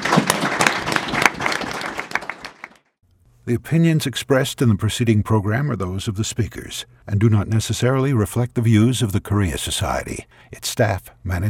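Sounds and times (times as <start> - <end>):
audience applause: 0.0 - 2.9
speech: 3.5 - 11.4.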